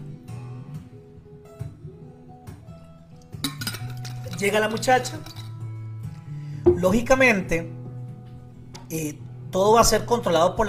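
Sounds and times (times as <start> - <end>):
glass clinking while drinking water: 3.5 - 4.4, 6.7 - 7.1
speech: 4.4 - 5.4, 6.8 - 7.8, 8.9 - 10.6.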